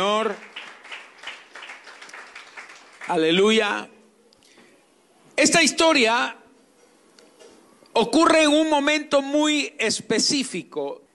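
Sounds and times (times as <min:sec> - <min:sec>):
audience applause: 0:00.2 - 0:03.4
speech: 0:03.1 - 0:04.0, 0:05.4 - 0:06.4, 0:08.0 - 0:11.0.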